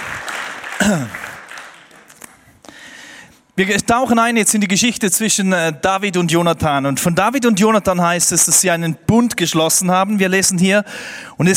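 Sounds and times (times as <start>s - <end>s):
audience applause: 0.0s - 2.5s
speech: 0.8s - 1.2s, 3.6s - 11.5s.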